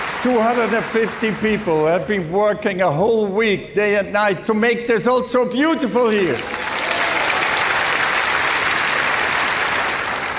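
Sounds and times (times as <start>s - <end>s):
large crowd applause: 0.0s - 2.0s, 6.2s - 10.3s
speech: 0.2s - 6.7s.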